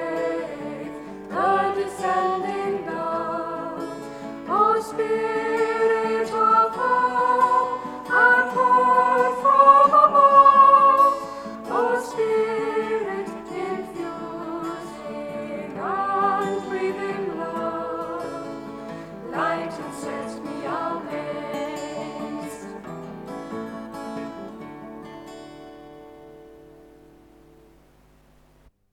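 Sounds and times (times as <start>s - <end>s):
unison voices singing a short verse anthem: 0.0s - 22.9s
guitar: 0.0s - 28.7s.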